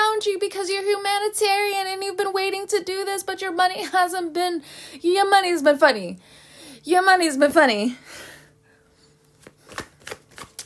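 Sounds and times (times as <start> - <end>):
speech: 0.2 - 8.3
tarot cards sliding as shuffled: 9.3 - 10.6.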